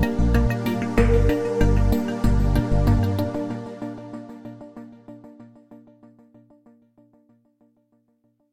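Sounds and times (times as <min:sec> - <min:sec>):
tonal ambient drone: 0:00.0 - 0:04.6.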